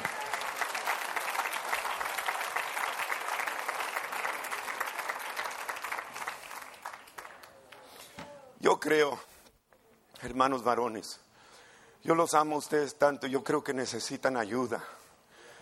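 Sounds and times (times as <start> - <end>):
audience applause: 0.0 - 7.6
speech: 8.6 - 9.3, 10.2 - 11.2, 12.0 - 15.0.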